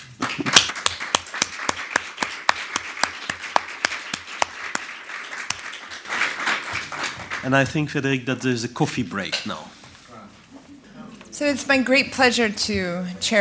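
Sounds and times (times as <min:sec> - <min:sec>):
audience applause for panelists: 0:00.0 - 0:07.8
speech: 0:07.4 - 0:09.8, 0:11.4 - 0:13.3.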